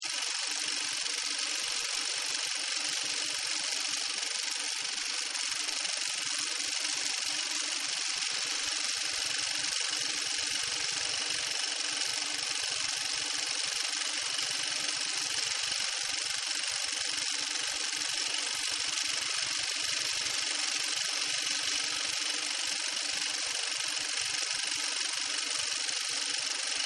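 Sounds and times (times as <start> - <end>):
film projector running: 0.0 - 26.8.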